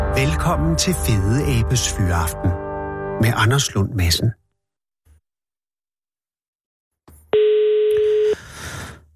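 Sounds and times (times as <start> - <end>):
speech: 0.2 - 2.6, 3.2 - 4.4
telephone dial tone: 7.4 - 8.4.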